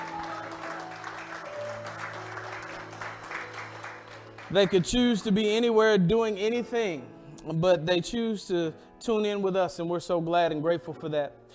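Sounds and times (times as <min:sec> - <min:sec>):
audience clapping hands: 0:00.0 - 0:05.5
speech: 0:04.5 - 0:11.4.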